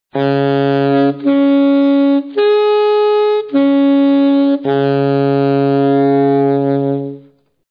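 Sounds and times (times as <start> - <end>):
saxophone: 0.1 - 7.6.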